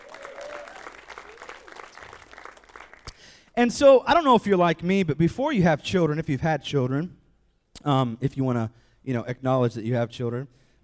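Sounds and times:
church congregation applauding a couple with a new baby boy: 0.0 - 3.5
speech: 3.6 - 7.2, 7.8 - 10.6.

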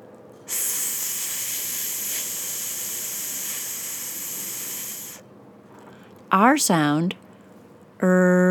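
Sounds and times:
voice holding an unvoiced TH consonant: 0.4 - 5.3
speech: 6.3 - 7.2, 8.0 - 8.4.

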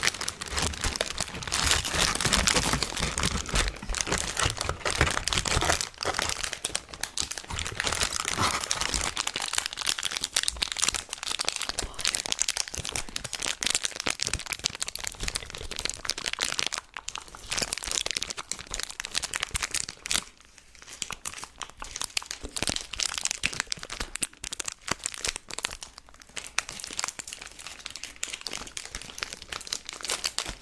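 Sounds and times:
candy and chocolate wrapper crinkling: 0.0 - 30.6.

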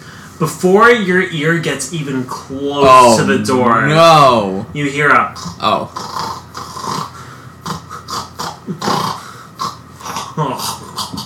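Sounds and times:
speech: 0.4 - 6.1
voice imitating choking on spit: 5.2 - 11.2.

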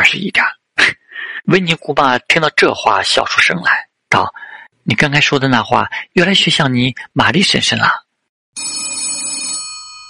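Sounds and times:
speech: 0.0 - 8.0
telephone ringing: 8.6 - 10.0.

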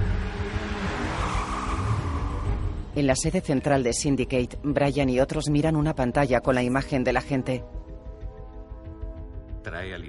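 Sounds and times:
red car engine revving down a circular ramp: 0.0 - 3.0
speech: 3.0 - 7.8.

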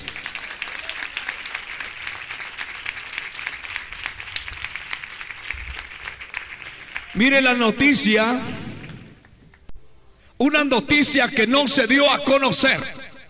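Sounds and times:
audience applauding: 0.0 - 7.6
speech: 7.2 - 8.6, 10.4 - 13.1.

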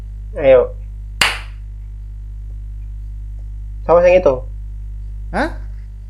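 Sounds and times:
speech: 0.4 - 0.8, 3.9 - 4.5, 5.3 - 5.6
hand clapping: 1.2 - 1.6.

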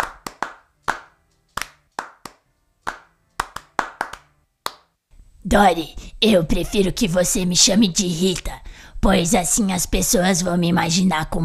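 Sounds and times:
audience clapping hands: 0.0 - 4.9
speech: 5.4 - 11.4.

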